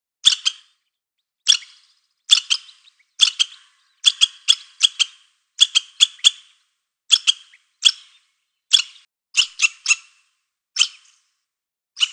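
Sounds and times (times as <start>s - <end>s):
squirrel barking: 0.2s - 0.6s, 1.5s - 6.5s, 7.1s - 10.2s.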